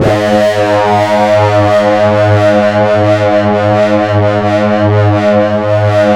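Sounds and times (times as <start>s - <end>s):
low synth note D: 0.0s - 5.0s.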